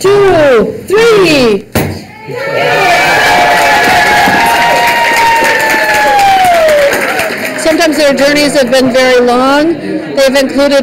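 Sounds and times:
speech: 0.0s - 1.7s, 8.0s - 10.8s
crowd cheering and whooping: 2.1s - 7.6s.

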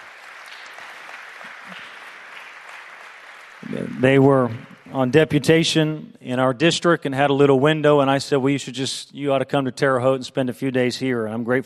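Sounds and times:
church audience applause welcoming visiting missionary guests: 0.0s - 5.6s
speech: 3.7s - 11.6s.

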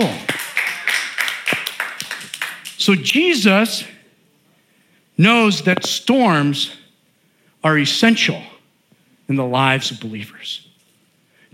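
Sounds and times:
audience clapping: 0.0s - 2.9s
speech: 2.9s - 3.9s, 5.2s - 6.8s, 7.6s - 8.5s, 9.3s - 10.7s.

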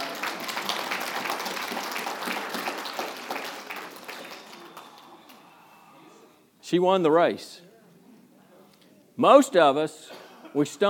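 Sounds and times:
audience clapping: 0.0s - 5.4s
speech: 6.7s - 7.6s, 9.2s - 10.8s.

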